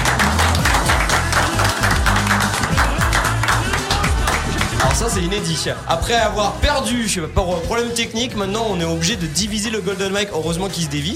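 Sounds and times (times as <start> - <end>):
small group applauding: 0.0 - 5.3
speech: 5.1 - 11.1.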